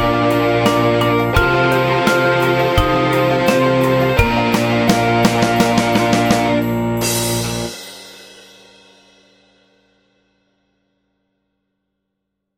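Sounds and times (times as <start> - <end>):
Christmas song practice track in B flat: 0.0 - 8.6.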